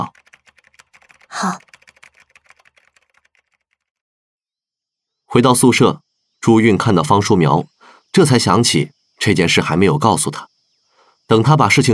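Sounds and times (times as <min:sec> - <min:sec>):
tapping on a computer keyboard: 0:00.0 - 0:03.9
speech: 0:01.4 - 0:01.7, 0:05.4 - 0:10.5, 0:11.3 - 0:11.9.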